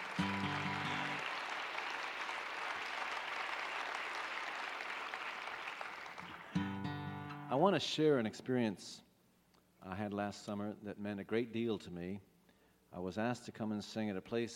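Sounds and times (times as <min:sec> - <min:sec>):
audience applause: 0:00.0 - 0:07.0
speech: 0:07.6 - 0:09.1, 0:09.9 - 0:12.3, 0:12.9 - 0:14.5.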